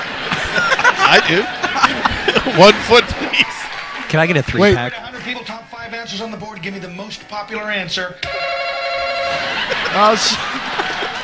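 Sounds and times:
laughter: 0.0 - 5.5, 9.2 - 11.2
speech: 0.6 - 8.7, 9.3 - 10.8
bell being rung: 8.2 - 10.4.

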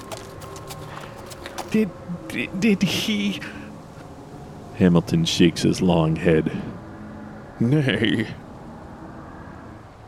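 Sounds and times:
riderless horse hooves trotting slowly in the dark: 0.0 - 1.8
speech: 1.7 - 3.6, 4.8 - 6.7, 7.6 - 8.4.

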